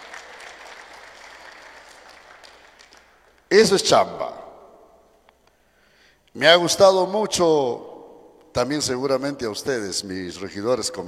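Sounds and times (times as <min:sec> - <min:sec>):
crowd clapping: 0:00.0 - 0:03.5
speech: 0:03.5 - 0:04.4, 0:06.4 - 0:07.9, 0:08.5 - 0:11.0.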